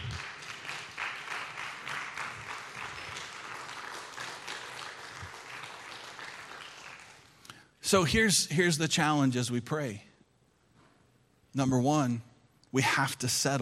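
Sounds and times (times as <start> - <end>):
audience applauding: 0.0 - 7.4
speech: 7.9 - 10.1, 11.6 - 13.6.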